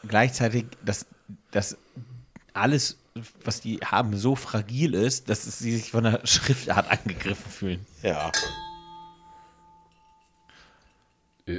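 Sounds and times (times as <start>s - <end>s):
speech: 0.0s - 1.8s, 2.6s - 8.6s
bell ringing: 8.2s - 10.7s.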